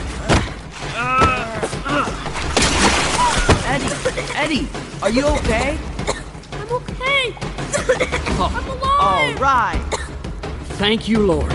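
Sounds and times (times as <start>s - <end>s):
people crying out: 0.8s - 2.4s
loose rocks smashing through flowstone in a cave: 2.2s - 4.4s
speech: 4.4s - 5.9s, 7.3s - 10.0s, 10.8s - 11.5s.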